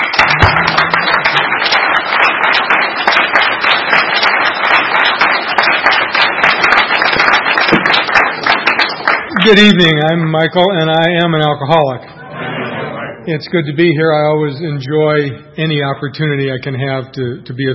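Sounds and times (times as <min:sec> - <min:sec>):
audience applause at a meeting welcoming a speaker: 0:00.0 - 0:10.4
speech: 0:09.4 - 0:12.1, 0:13.3 - 0:17.7.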